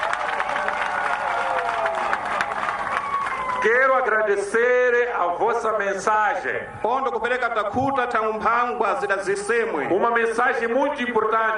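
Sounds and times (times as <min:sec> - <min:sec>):
audience applause: 0:00.0 - 0:04.0
faint voices or cheers: 0:00.0 - 0:04.4
speech: 0:03.6 - 0:11.5.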